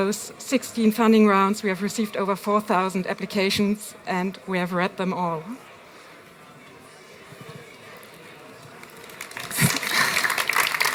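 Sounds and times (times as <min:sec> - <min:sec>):
speech: 0:00.0 - 0:05.7
audience applause: 0:08.6 - 0:10.9.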